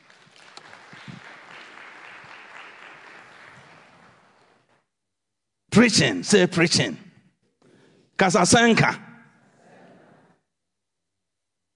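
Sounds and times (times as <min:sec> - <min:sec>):
audience clapping: 0:00.0 - 0:04.9
speech: 0:05.8 - 0:07.0, 0:08.2 - 0:09.0.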